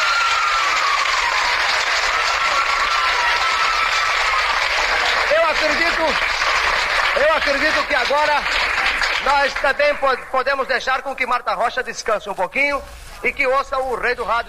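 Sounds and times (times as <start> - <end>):
audience applause: 0.0 - 10.6
speech: 5.6 - 6.3, 7.2 - 14.4.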